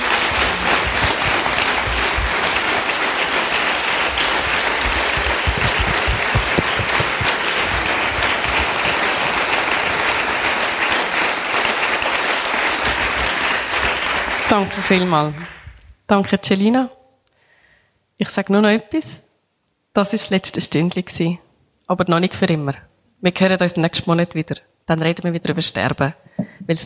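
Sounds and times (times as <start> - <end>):
audience applause: 0.0 - 15.7
speech: 14.6 - 17.0, 18.2 - 19.2, 20.0 - 26.8.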